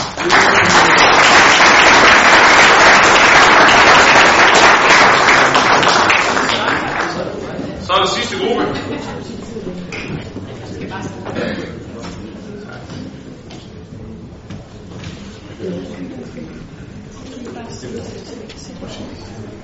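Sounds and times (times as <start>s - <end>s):
crowd applause: 0.0s - 7.5s.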